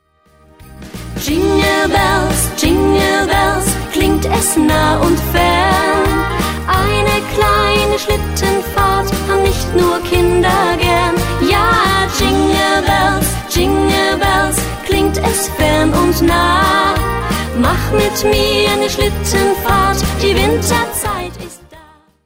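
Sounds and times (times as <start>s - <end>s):
Christmas song: 0.0s - 22.2s.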